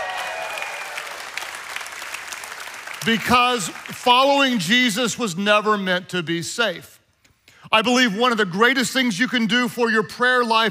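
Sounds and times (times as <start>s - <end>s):
faint high cheer: 0.0s - 3.0s
audience applause: 0.0s - 4.0s
speech: 3.0s - 6.9s, 7.7s - 10.7s.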